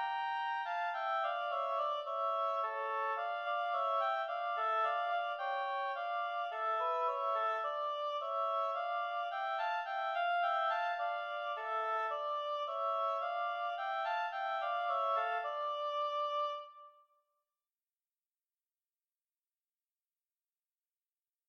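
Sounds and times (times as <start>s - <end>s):
two oboes playing a tambourin: 0.0s - 17.0s.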